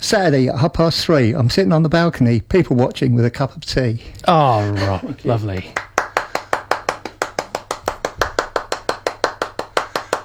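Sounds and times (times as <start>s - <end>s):
speech: 0.1s - 5.9s
hand clapping: 5.5s - 10.2s.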